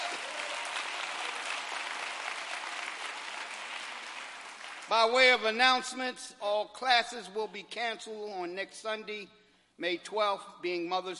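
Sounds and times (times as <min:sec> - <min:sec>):
audience applause: 0:00.0 - 0:04.9
speech: 0:04.9 - 0:11.1.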